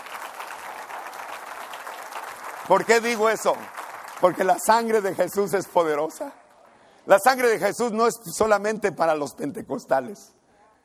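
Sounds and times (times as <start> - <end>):
audience applause: 0.0 - 5.8
speech: 2.7 - 6.4, 7.1 - 10.4.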